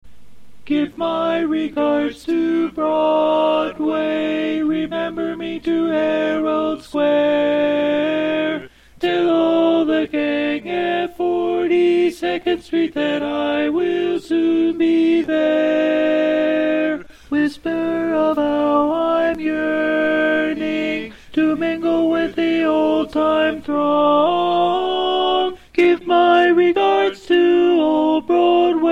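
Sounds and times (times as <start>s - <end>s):
tenor singing: 0.6s - 28.9s.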